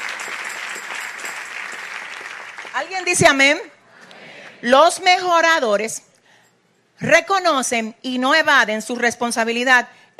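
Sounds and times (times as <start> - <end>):
audience applause: 0.0 - 3.0
speech: 2.8 - 3.8, 4.6 - 6.1, 7.0 - 10.1.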